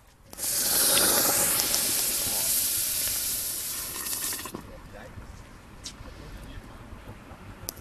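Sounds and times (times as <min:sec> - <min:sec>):
hot basalt stone hissing in brewing wort: 0:00.3 - 0:04.6
bubbling and crackling: 0:00.3 - 0:04.7.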